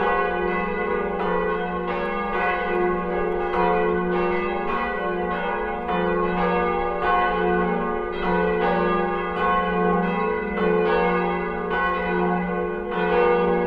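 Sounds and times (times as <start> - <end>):
church bells ringing on Sundays in Ordinary Time: 0.0 - 13.6.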